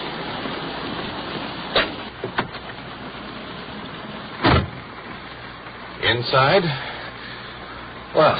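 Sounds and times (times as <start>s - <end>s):
rain: 0.0s - 8.3s
police car door thump: 4.4s - 4.8s
speech: 6.1s - 6.9s, 8.1s - 8.3s.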